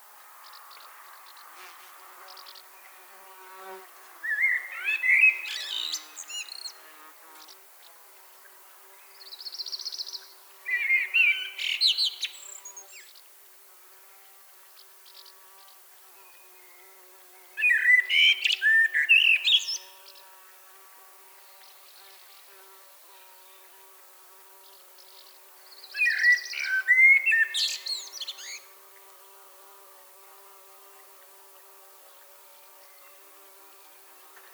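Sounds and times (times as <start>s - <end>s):
Common blackbird singing: 4.3s - 6.7s, 9.7s - 13.0s, 17.6s - 19.8s, 25.9s - 28.6s.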